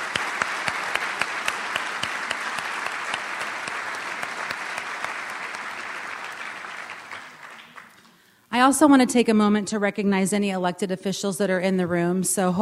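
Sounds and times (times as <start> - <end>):
crowd applause: 0.0 - 8.1
speech: 8.6 - 12.6.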